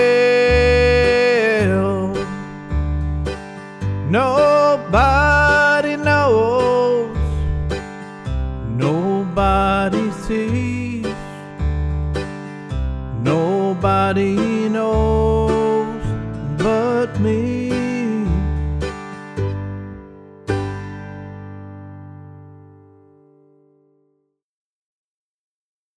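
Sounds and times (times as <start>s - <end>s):
vocals in the key of G: 0.0s - 3.0s, 3.8s - 11.7s, 13.1s - 19.3s
backing track in the key of G: 0.0s - 23.3s.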